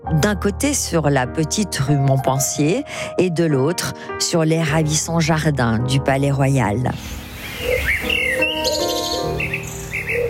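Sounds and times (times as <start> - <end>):
speech: 0.1 - 8.2
pigeons perched in chestnut trees cooing: 7.4 - 10.2.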